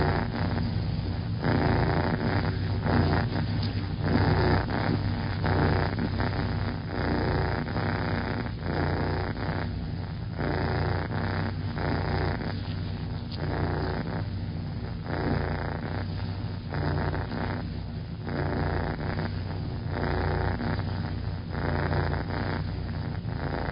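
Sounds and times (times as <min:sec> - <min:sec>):
cat purring: 0:00.0 - 0:23.7.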